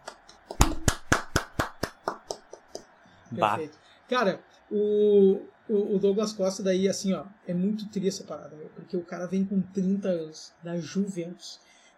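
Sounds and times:
people clapping: 0:00.0 - 0:03.0
speech: 0:03.3 - 0:11.7.

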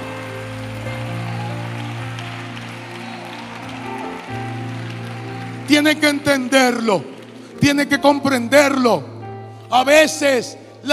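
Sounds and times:
audience applause: 0:00.0 - 0:08.0
speech: 0:05.7 - 0:09.1, 0:09.7 - 0:10.9.

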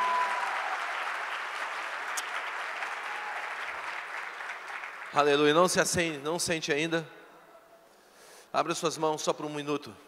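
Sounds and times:
crowd applause: 0:00.0 - 0:05.3
speech: 0:05.1 - 0:07.2, 0:08.5 - 0:10.0.

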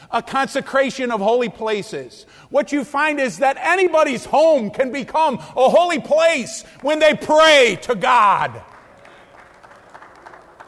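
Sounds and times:
speech: 0:00.1 - 0:08.7
weak applause from audience: 0:06.8 - 0:10.6.

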